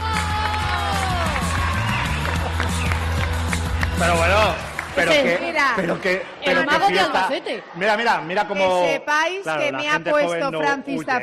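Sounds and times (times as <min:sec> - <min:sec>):
audience applause: 0:00.0 - 0:07.0
speech: 0:04.0 - 0:11.2.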